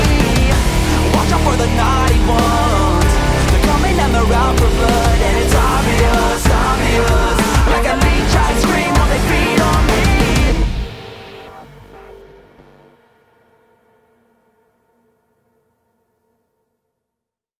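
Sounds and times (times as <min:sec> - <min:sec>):
rapping: 0:00.0 - 0:10.6.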